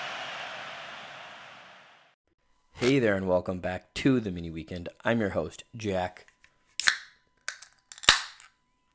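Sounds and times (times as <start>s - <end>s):
speech: 2.8s - 6.3s
beer can cracking open: 6.8s - 8.5s.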